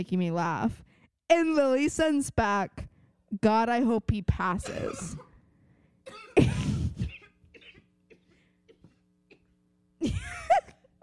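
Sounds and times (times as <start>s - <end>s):
speech: 0.0s - 5.3s
low steady hum: 0.0s - 11.0s
coughing and sneezing: 4.6s - 5.4s, 6.0s - 11.0s.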